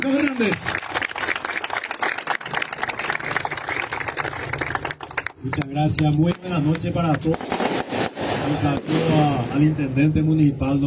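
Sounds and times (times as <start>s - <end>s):
speech: 0.0s - 0.9s, 5.4s - 7.6s, 8.5s - 10.8s
audience applause: 0.0s - 6.1s.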